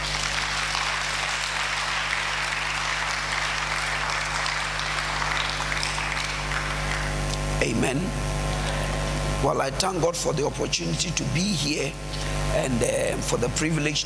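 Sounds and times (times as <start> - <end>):
audience applause: 0.0 - 7.3
speech: 7.6 - 8.3, 9.4 - 14.0.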